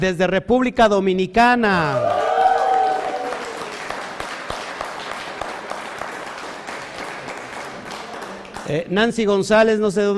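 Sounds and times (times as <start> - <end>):
speech: 0.0 - 2.3, 8.7 - 10.1
applause: 2.0 - 8.9.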